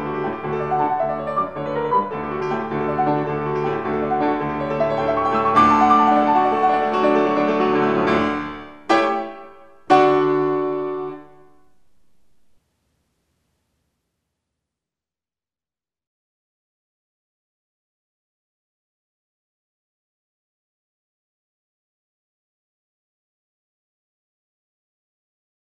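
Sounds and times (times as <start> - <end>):
piano sonata: 0.0 - 12.6.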